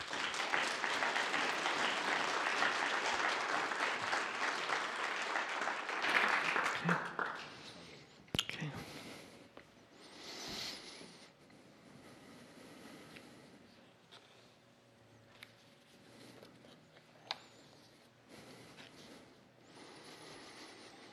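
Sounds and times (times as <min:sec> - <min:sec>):
audience applause welcoming a speaker onto the stage at a talk: 0:00.0 - 0:07.9.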